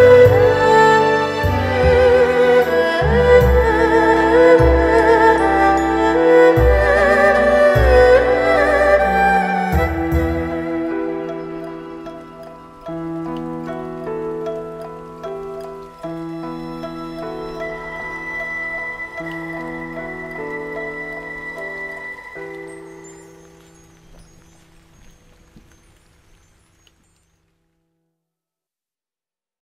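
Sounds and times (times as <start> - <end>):
erhu cover: 0.0 - 23.8.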